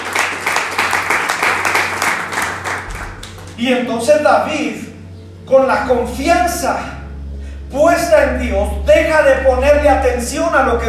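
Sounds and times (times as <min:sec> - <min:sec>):
loud applause: 0:00.0 - 0:03.6
speech: 0:03.6 - 0:04.8, 0:05.5 - 0:06.9, 0:07.7 - 0:10.8.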